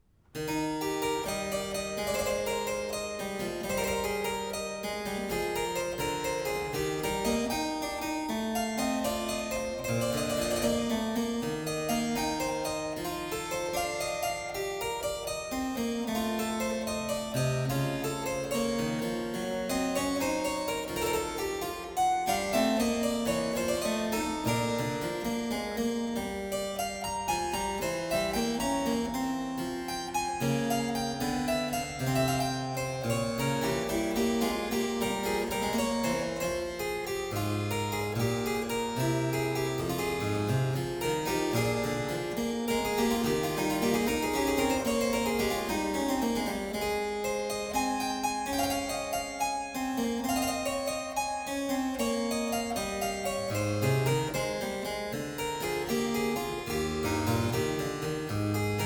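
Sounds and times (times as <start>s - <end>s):
prelude: 0.0s - 58.8s.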